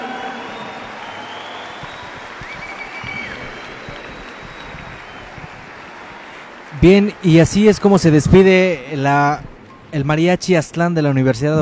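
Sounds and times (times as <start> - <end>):
audience applause: 0.0 - 9.1
speech: 6.8 - 11.5.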